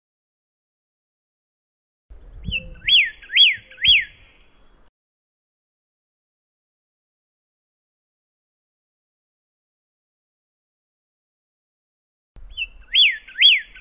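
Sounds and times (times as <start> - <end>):
pyrrhuloxia singing thin and slurred whistles: 2.2 - 4.9, 12.4 - 13.7.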